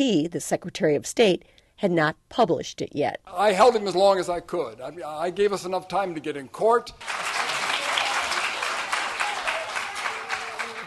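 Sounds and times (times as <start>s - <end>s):
speech: 0.0s - 7.6s
audience applause: 7.0s - 10.8s.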